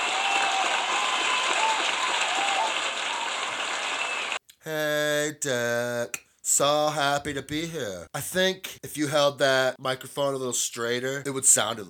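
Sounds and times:
audience applause for a contestant at a comedy show: 0:00.0 - 0:04.4
speech: 0:04.7 - 0:11.8.

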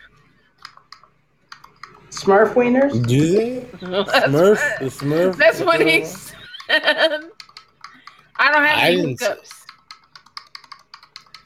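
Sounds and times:
typing on a computer keyboard: 0:00.6 - 0:03.2, 0:06.5 - 0:08.4, 0:09.5 - 0:11.4
speech: 0:02.2 - 0:07.3, 0:08.5 - 0:09.6
laughter: 0:03.8 - 0:07.4.

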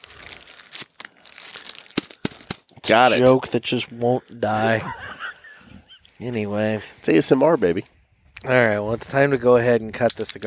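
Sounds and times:
cellophane wrapper crinkling as a cigar is pulled out: 0:00.0 - 0:03.3
laughter: 0:02.9 - 0:03.4, 0:04.4 - 0:06.1
speech: 0:02.9 - 0:05.2, 0:06.2 - 0:10.4.

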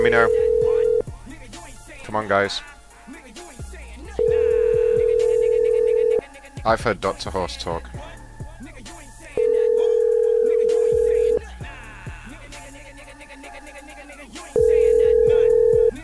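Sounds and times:
speech: 0:00.0 - 0:00.4, 0:02.1 - 0:02.8, 0:06.6 - 0:08.0
phone line ringback tones: 0:00.0 - 0:01.1, 0:04.2 - 0:06.2, 0:09.4 - 0:11.4, 0:14.6 - 0:16.0.

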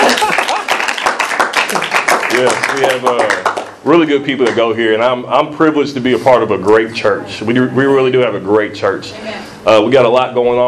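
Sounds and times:
audience clapping: 0:00.0 - 0:03.8
speech: 0:02.4 - 0:10.6.

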